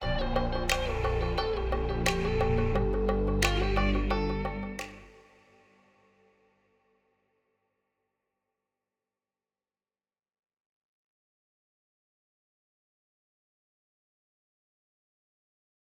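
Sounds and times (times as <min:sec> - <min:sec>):
music: 0:00.0 - 0:06.1.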